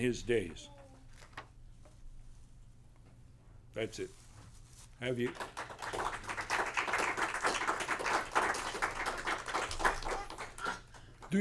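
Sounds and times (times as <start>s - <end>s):
speech: 0.0s - 0.8s, 3.7s - 4.2s, 5.0s - 6.1s
audience clapping: 5.1s - 11.3s.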